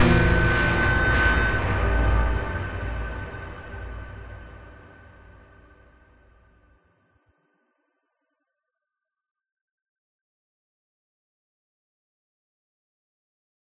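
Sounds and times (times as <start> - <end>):
short musical sting: 0.0 - 5.0.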